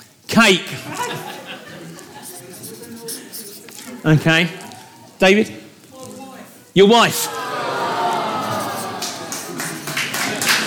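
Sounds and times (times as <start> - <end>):
speech: 0.4 - 1.3, 4.0 - 4.6, 5.2 - 5.6, 6.8 - 7.4
laughter: 0.8 - 4.0, 7.2 - 10.6
round of applause: 7.3 - 10.6.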